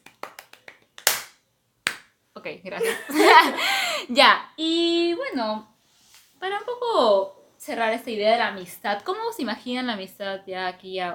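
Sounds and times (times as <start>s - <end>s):
applause: 0.0s - 1.3s
speech: 2.4s - 5.7s, 6.4s - 11.1s
laughter: 2.8s - 3.8s.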